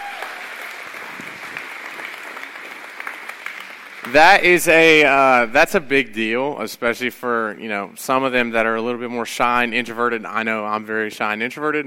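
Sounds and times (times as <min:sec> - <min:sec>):
audience applause: 0:00.0 - 0:05.2
speech: 0:04.1 - 0:11.8.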